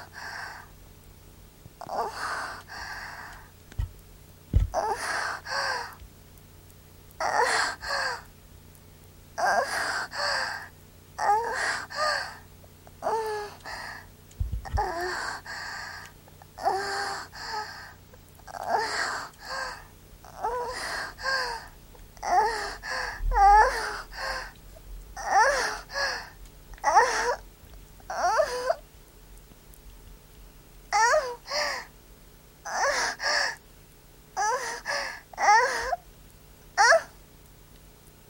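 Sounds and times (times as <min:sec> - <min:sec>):
young woman moaning: 0:01.8 - 0:03.2, 0:04.6 - 0:06.0, 0:07.2 - 0:08.3, 0:09.4 - 0:10.7, 0:11.2 - 0:12.4, 0:13.0 - 0:14.0, 0:14.6 - 0:15.5, 0:16.6 - 0:17.9, 0:18.5 - 0:21.7, 0:22.2 - 0:24.6, 0:25.2 - 0:27.4, 0:28.1 - 0:28.8, 0:30.9 - 0:31.9, 0:32.7 - 0:33.5, 0:34.4 - 0:36.0, 0:36.8 - 0:37.1.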